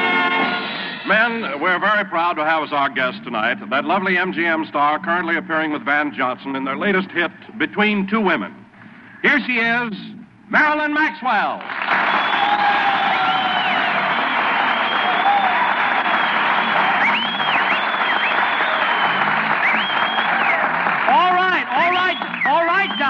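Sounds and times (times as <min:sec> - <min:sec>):
speech: 0:01.1 - 0:08.6, 0:09.2 - 0:12.0
studio audience applause: 0:11.6 - 0:23.0.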